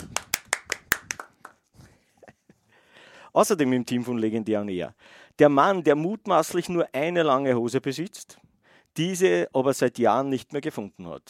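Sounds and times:
applause: 0.0s - 1.6s
speech: 3.4s - 8.4s, 9.0s - 11.2s.

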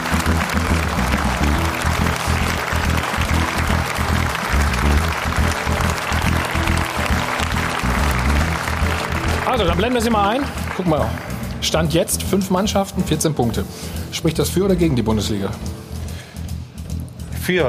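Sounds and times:
audience applause and cheering: 0.0s - 12.0s
speech: 9.6s - 15.8s, 17.5s - 17.6s.

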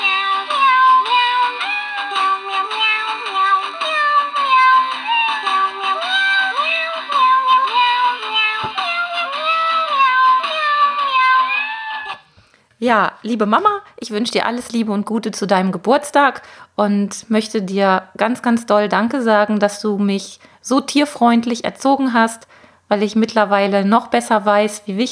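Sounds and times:
musical birthday card playing a meowing song: 0.0s - 12.2s
speech: 12.8s - 25.1s.

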